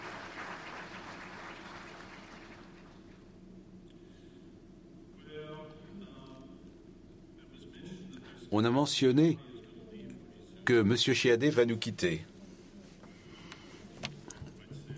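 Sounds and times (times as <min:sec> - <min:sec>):
audience applause: 0:00.0 - 0:03.3
speech: 0:08.5 - 0:09.5, 0:10.7 - 0:12.3.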